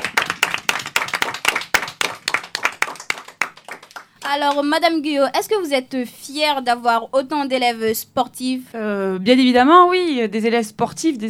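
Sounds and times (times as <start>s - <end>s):
audience clapping for students: 0.0s - 4.7s
speech: 4.3s - 11.2s.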